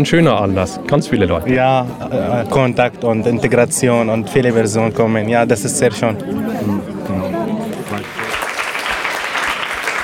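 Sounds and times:
speech: 0.0s - 7.4s
audience applause: 7.5s - 10.0s.

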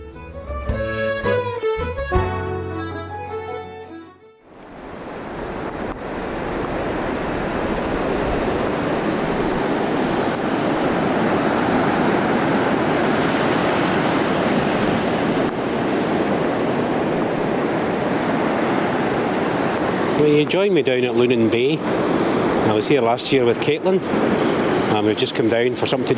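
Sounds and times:
tonal music: 0.0s - 4.4s
torrential rain on a beach at Lunan Bay: 4.5s - 26.1s
speech: 20.3s - 22.1s, 22.7s - 26.1s.

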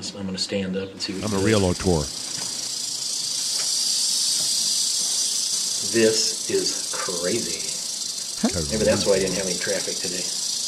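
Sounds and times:
speech: 0.0s - 2.4s, 5.9s - 7.7s, 8.4s - 10.4s
rattlesnake rattling: 1.1s - 10.6s.

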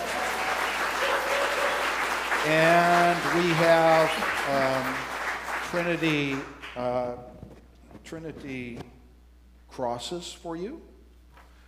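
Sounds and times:
audience applause: 0.0s - 6.9s
speech: 2.4s - 5.1s, 5.7s - 7.4s, 8.0s - 8.9s, 9.8s - 10.9s.

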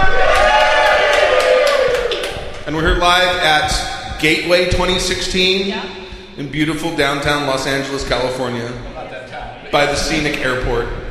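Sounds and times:
live studio audience cheering and whooping at the Gateway 2016 event in Los Angeles: 0.0s - 2.6s
speech: 2.7s - 11.0s.

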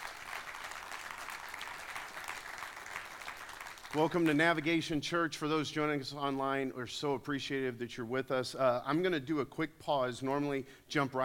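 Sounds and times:
church audience applauding: 0.0s - 4.6s
speech: 3.9s - 11.2s.

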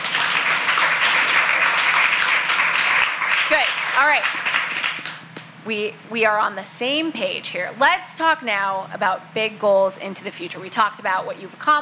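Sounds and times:
crowd applauding: 0.0s - 5.2s
speech: 4.0s - 4.6s, 5.6s - 11.8s.

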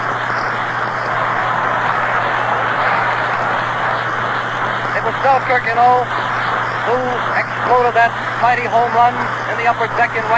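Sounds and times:
faint low hum: 0.0s - 10.3s
stadium crowd clapping and cheering a baseball batter: 1.0s - 3.8s
speech: 5.2s - 6.2s, 6.9s - 10.3s.

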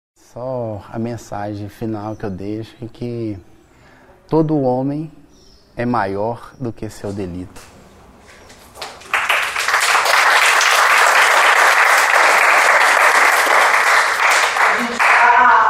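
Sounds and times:
speech: 0.3s - 3.5s, 4.3s - 5.2s, 5.8s - 7.7s
audience applause: 8.7s - 15.6s.

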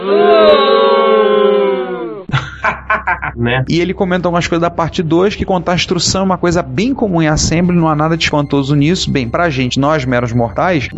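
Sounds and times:
crowd booing: 0.0s - 2.3s
laughter: 2.3s - 3.4s
speech: 3.0s - 10.9s.

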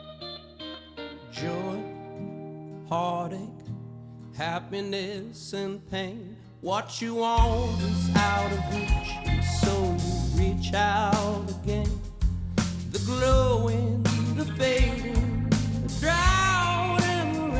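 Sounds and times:
speech: 1.4s - 1.7s, 2.9s - 3.6s, 4.4s - 9.6s, 10.6s - 12.0s, 13.0s - 15.2s
rock song played from an album: 7.2s - 17.5s.

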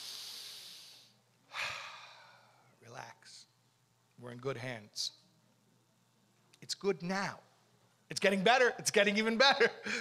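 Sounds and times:
person breathing during a relaxation exercise: 0.0s - 2.8s
speech: 4.2s - 5.2s, 6.6s - 7.5s, 8.1s - 9.9s.

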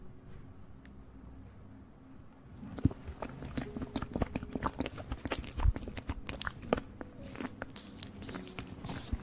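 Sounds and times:
eating sugar crunchy chewing: 2.6s - 9.2s.

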